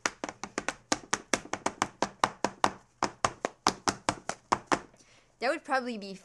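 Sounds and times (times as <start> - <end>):
laced-up boots clicking and tapping in a dance: 0.0 - 5.0
speech: 5.4 - 6.2.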